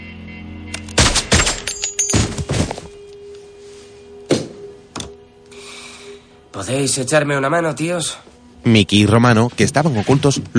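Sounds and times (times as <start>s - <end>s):
gunshots fired at men: 0.9s - 1.7s
speech: 6.6s - 10.5s.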